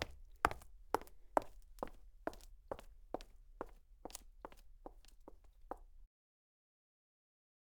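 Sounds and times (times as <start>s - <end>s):
high heels footsteps on clean cement: 0.0s - 6.0s.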